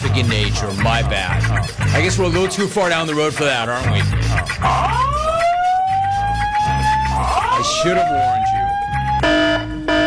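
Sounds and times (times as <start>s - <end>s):
speech: 0.2s - 5.2s, 7.6s - 8.5s
siren wail: 4.4s - 10.0s.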